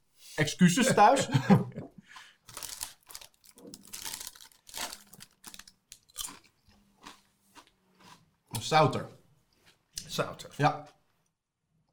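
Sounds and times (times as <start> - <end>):
speech: 0.4 - 1.9, 8.7 - 9.2, 10.2 - 11.0
laughter: 0.8 - 2.0
crunchy chewing while tasting food: 2.2 - 8.3.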